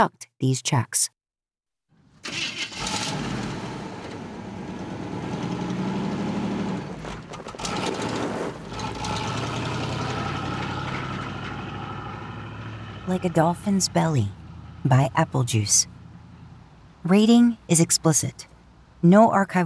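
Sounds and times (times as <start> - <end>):
speech: 0.0 - 1.2, 13.1 - 16.0, 17.0 - 19.6
car engine starting and idling: 1.9 - 17.2.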